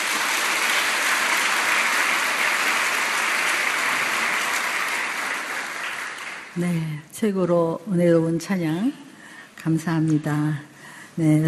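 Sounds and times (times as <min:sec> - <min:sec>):
audience applause: 0:00.0 - 0:06.6
speech: 0:06.6 - 0:09.0, 0:09.6 - 0:11.4.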